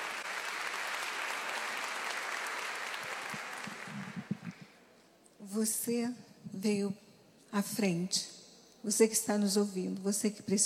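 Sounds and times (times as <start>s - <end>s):
audience applause: 0.0s - 4.6s
speech: 5.6s - 10.6s.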